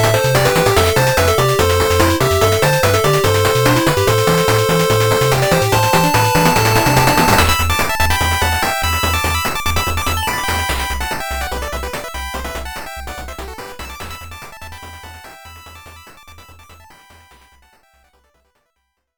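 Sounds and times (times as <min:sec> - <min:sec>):
8-bit music: 0:00.0 - 0:14.1.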